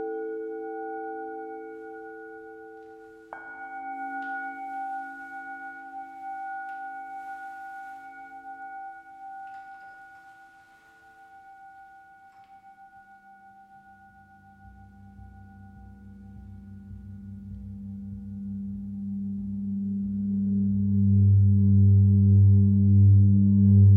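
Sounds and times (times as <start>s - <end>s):
singing bowl ringing in a sound bath: 0.0s - 18.8s
deep pulsing drone: 14.8s - 23.9s.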